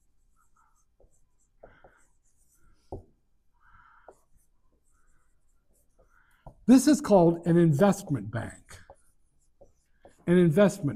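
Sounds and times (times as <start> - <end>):
marker or chalk writing on a board during a classroom lecture: 0.0 - 10.9
speech: 6.7 - 8.6, 10.3 - 10.9.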